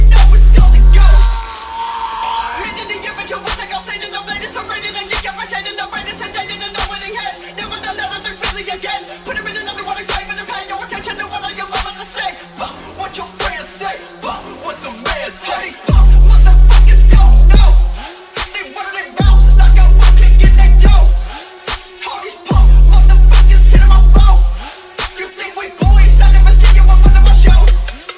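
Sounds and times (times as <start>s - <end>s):
boosted bass: 0.0s - 1.6s, 15.9s - 18.1s, 19.2s - 21.4s, 22.5s - 24.7s, 25.8s - 28.0s.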